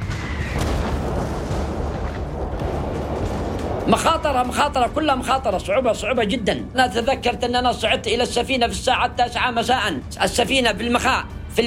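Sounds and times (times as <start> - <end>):
shelling bombardment: 0.0 - 5.0
speech: 3.9 - 11.6.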